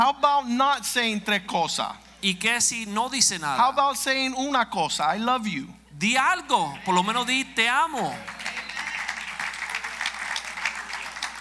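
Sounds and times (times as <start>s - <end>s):
speech: 0.0s - 8.4s
audience clapping: 6.8s - 11.3s.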